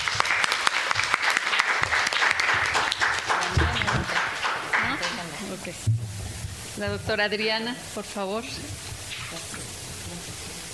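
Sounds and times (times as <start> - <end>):
audience applause: 0.0 - 5.7
speech: 5.7 - 6.2, 6.8 - 8.9.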